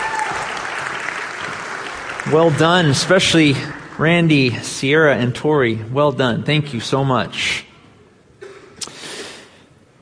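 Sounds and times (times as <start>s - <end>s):
audience applause: 0.0s - 4.7s
speech: 2.2s - 7.7s.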